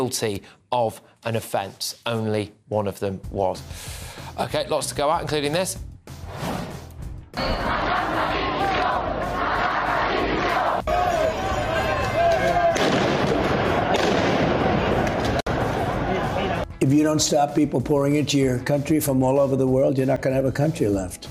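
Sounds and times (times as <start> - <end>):
speech: 0.0 - 5.9, 16.9 - 21.2
street protest crowd chanting: 7.4 - 16.6
sharp bangs like firecrackers: 12.7 - 15.4.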